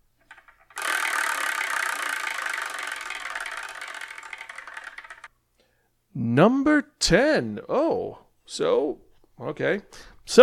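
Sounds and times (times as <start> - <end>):
numbered wheel spinning to pick a manga: 0.0 - 5.3
speech: 6.2 - 10.4.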